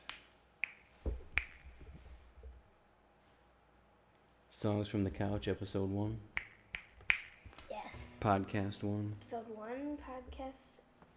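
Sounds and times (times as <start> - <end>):
finger snaps: 0.0 - 1.8, 6.4 - 7.4
faint hiss: 0.0 - 11.1
speech: 4.6 - 6.4, 8.2 - 10.7.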